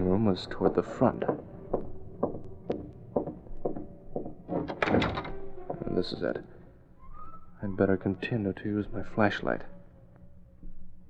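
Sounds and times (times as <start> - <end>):
speech: 0.2 - 1.5, 6.0 - 6.6, 7.6 - 9.8
apartment service door opening with a skeleton key: 1.3 - 7.4.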